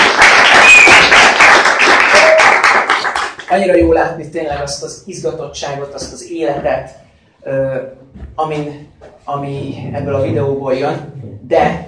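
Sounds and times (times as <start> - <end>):
audience applauding at a gathering: 0.0 - 3.5
whistle: 0.5 - 1.2
speech: 3.5 - 11.8.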